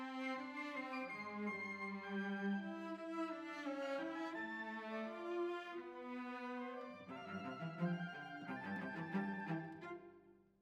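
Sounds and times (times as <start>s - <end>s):
cellos playing: 0.2s - 10.1s.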